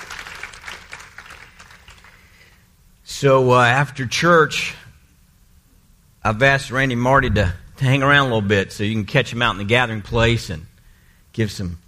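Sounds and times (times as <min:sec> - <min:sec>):
church congregation applauding a pastor: 0:00.0 - 0:02.6
speech: 0:03.2 - 0:04.8, 0:06.3 - 0:10.7, 0:11.4 - 0:11.8.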